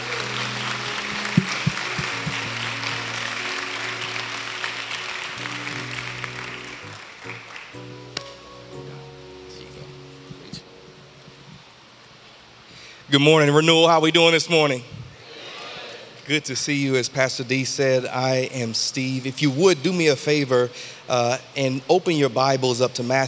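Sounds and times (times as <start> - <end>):
church congregation applause welcoming a pastor up to preach: 0.0 - 8.2
speech: 13.1 - 15.0, 16.3 - 23.2.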